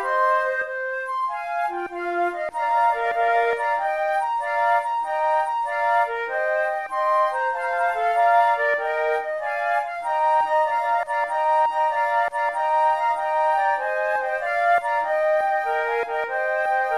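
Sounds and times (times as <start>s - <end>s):
flute playing a sonata allegro: 0.0s - 16.9s.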